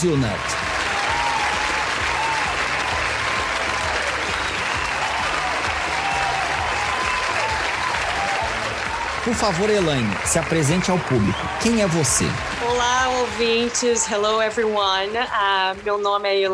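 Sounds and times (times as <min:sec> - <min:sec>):
speech: 0:00.0 - 0:00.6, 0:09.2 - 0:16.5
faint cheering or voices: 0:00.0 - 0:14.7
applause sound effect: 0:00.0 - 0:16.5.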